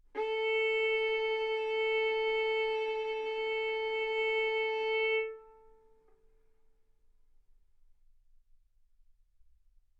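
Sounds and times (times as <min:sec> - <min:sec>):
violin bowed mezzo-forte on the A string, A4 and B4: 0:00.0 - 0:05.8.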